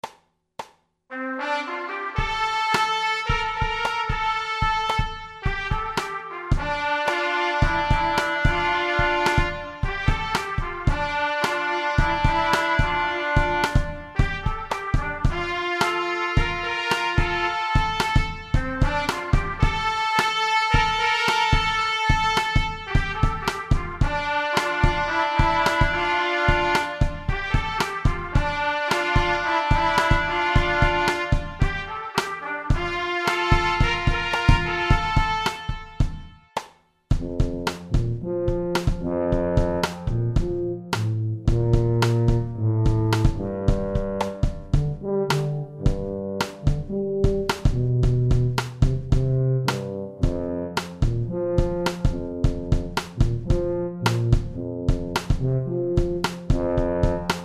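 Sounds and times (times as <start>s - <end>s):
trumpet: 1.1s - 57.4s.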